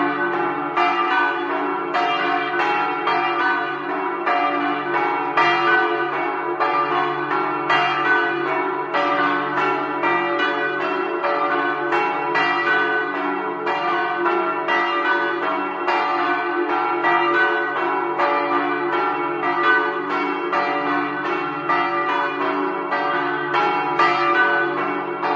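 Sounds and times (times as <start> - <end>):
bells ringing in Campolongo: 0.0 - 25.3.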